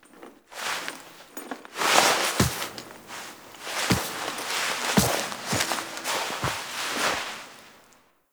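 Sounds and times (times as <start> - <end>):
foley sounds: 2.0 - 7.8.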